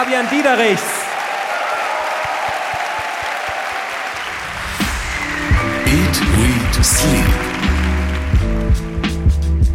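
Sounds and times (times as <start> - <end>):
speech: 0.0 - 1.0, 6.1 - 7.6
audience applause: 0.0 - 9.6.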